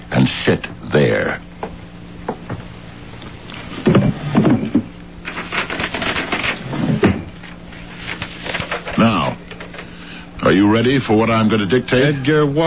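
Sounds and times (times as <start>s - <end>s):
speech: 0.1s - 1.5s, 10.5s - 12.6s
wooden drawer in a table sliding open and shut: 3.8s - 7.3s
rummaging for a pen and hotel writing paper in a drawer: 4.5s - 7.2s.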